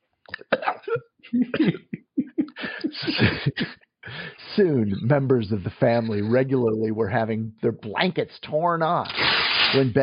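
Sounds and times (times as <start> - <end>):
person gulping: 0.3 - 1.6
person choking: 0.3 - 3.3
speech: 0.9 - 1.8, 3.2 - 3.8, 4.6 - 10.0
laughter: 0.9 - 3.8, 5.8 - 6.5.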